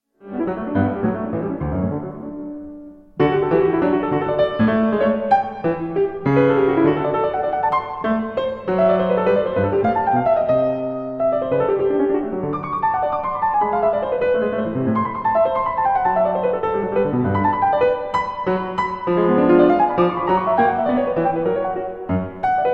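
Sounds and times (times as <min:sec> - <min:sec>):
keyboard sonata in G major: 0:00.2 - 0:22.7.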